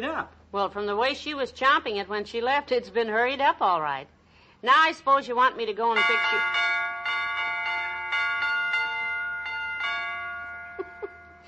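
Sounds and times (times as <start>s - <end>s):
speech: 0.0s - 6.8s
doorbell chiming a jingle-like tune: 6.0s - 11.4s.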